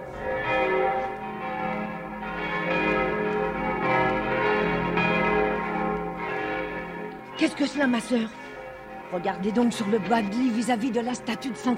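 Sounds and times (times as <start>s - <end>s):
Notre-Dame church bells ringing end of mass: 0.0s - 11.7s
speech: 7.4s - 8.4s, 9.1s - 11.7s.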